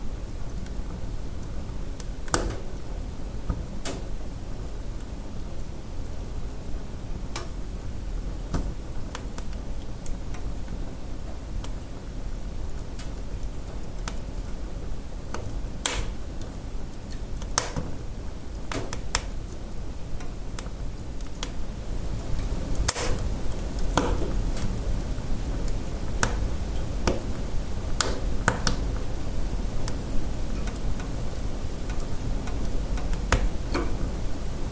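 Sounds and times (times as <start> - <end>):
wood stove fire: 0.0 - 34.7.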